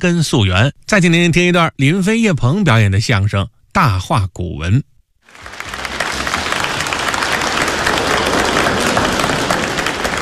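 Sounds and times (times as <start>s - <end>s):
speech: 0.0s - 5.7s
audience applause: 5.2s - 10.2s.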